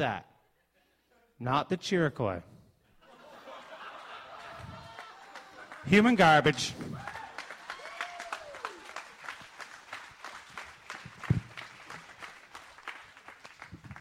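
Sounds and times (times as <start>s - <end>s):
speech: 0.0s - 0.3s, 1.4s - 2.5s, 5.8s - 7.2s
laughter: 3.0s - 6.7s
audience clapping: 3.8s - 13.9s.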